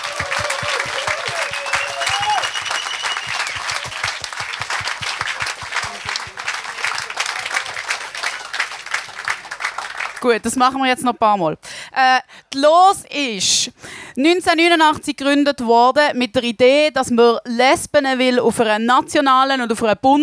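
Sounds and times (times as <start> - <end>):
audience applause: 0.0 - 10.4
speech: 10.2 - 20.2.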